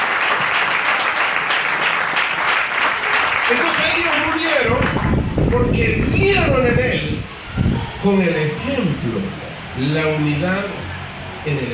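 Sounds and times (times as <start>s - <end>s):
loud audience applause: 0.0s - 6.1s
speech: 5.5s - 7.3s, 8.0s - 10.8s, 11.4s - 11.7s.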